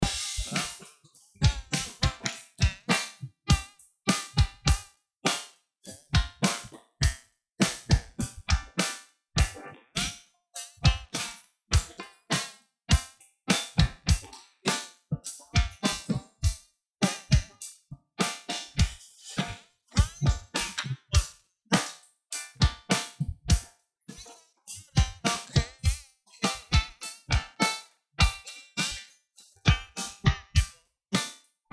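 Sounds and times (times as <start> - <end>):
bar drums: 0.0 - 31.4.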